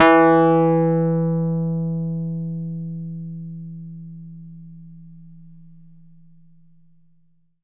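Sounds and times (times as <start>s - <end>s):
electric piano E2 note played fortissimo: 0.0s - 5.6s.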